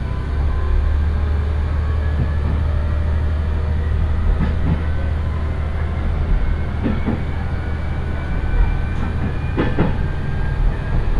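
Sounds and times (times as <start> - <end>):
one-car rail bus engine drone on Ise Railway: 0.0 - 11.1
rail joint clicks: 2.0 - 2.8, 4.0 - 5.1, 6.0 - 7.6, 8.2 - 11.1.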